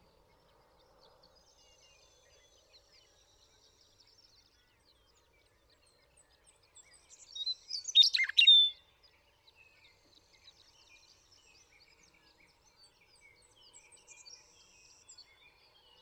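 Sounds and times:
Western meadowlark song: 0.0s - 16.0s.

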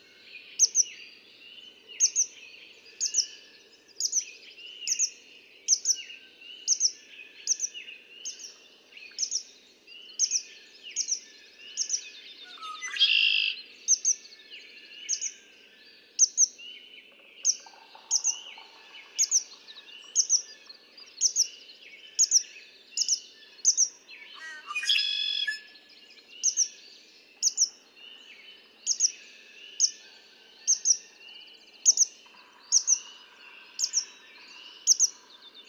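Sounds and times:
bird chorus: 0.0s - 35.6s
red-winged blackbird singing: 4.0s - 35.6s.

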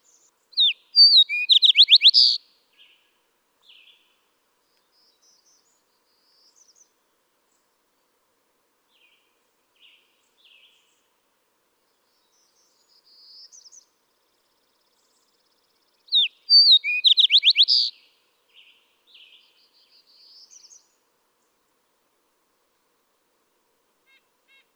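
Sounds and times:
Fox Sparrow song: 0.0s - 7.7s, 11.8s - 21.6s.

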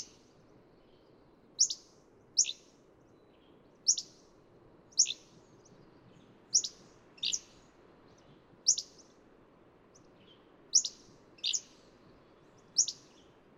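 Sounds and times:
Hammond's flycatcher calling with sharp chips and burry notes: 0.0s - 0.2s, 1.6s - 2.7s, 3.9s - 4.2s, 4.9s - 5.4s, 6.5s - 7.6s, 8.7s - 9.0s, 10.7s - 11.9s, 12.6s - 13.2s.

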